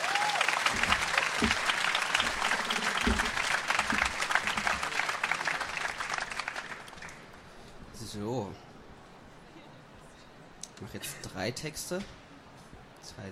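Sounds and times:
crowd applause: 0.0s - 7.5s
speech: 11.0s - 12.2s.

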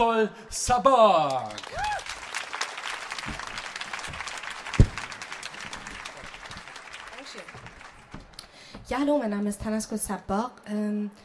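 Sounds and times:
speech: 0.0s - 2.0s, 8.9s - 11.2s
audience applause welcoming performer to stage: 1.3s - 8.6s.

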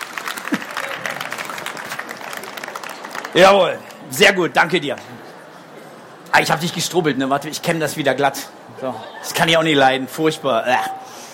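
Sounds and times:
audience applause: 0.0s - 4.1s
speech: 3.3s - 5.2s, 6.3s - 11.0s.

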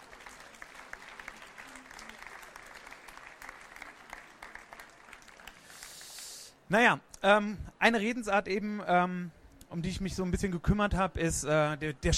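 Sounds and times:
audience applause: 0.0s - 6.3s
speech: 6.7s - 12.1s.

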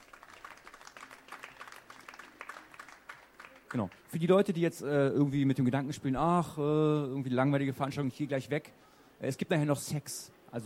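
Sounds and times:
audience applause: 0.0s - 4.2s
speech: 3.7s - 10.6s.

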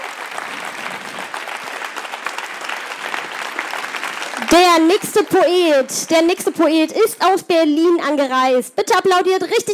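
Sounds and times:
audience applause at a poetry slam: 0.0s - 6.8s
speech: 4.4s - 9.7s.

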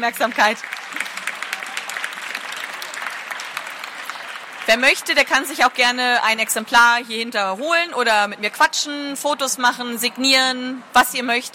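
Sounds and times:
speech: 0.0s - 0.9s, 4.7s - 11.5s
audience applause: 0.0s - 5.7s.

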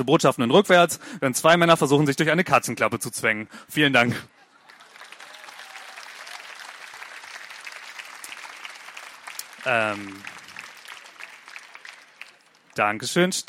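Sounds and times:
speech: 0.0s - 4.4s, 9.6s - 10.4s, 12.8s - 13.4s
laughter: 4.0s - 5.9s
audience applause: 4.4s - 12.8s.

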